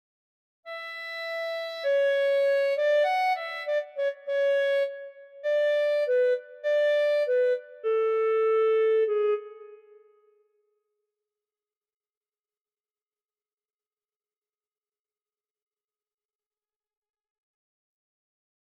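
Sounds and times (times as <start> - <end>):
clarinet: 0.7 - 10.5.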